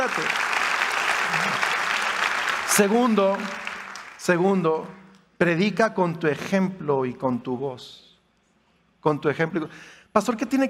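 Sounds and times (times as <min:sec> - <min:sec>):
church audience applauding: 0:00.0 - 0:04.4
speech: 0:02.8 - 0:03.6, 0:04.2 - 0:08.1, 0:09.0 - 0:10.6.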